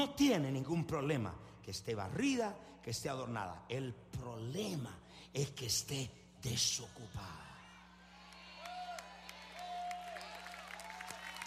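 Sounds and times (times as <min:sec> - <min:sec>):
speech: 0:00.0 - 0:07.5
loud audience applause: 0:08.6 - 0:11.4.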